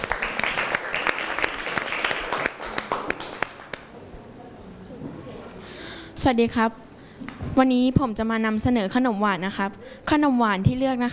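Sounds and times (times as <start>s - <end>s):
audience applause for the chef: 0.0s - 3.8s
speech: 6.2s - 6.9s, 7.6s - 11.1s.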